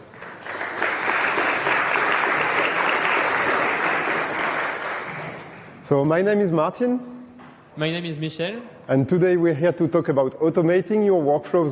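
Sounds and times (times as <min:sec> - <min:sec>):
conference audience applause for speakers at a Kotlin tech talk: 0:00.0 - 0:05.8
speech: 0:05.9 - 0:07.1, 0:07.8 - 0:11.7.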